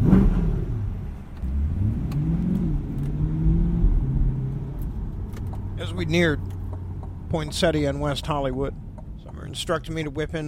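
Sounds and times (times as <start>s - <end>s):
Stingray sports car engine revving: 0.0s - 10.2s
speech: 6.0s - 6.6s, 7.3s - 8.8s, 9.5s - 10.4s.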